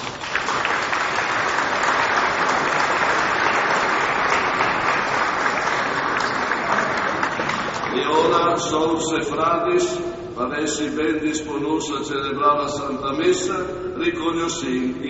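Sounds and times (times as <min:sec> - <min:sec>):
audience applause: 0:00.0 - 0:08.1
speech: 0:08.6 - 0:15.0.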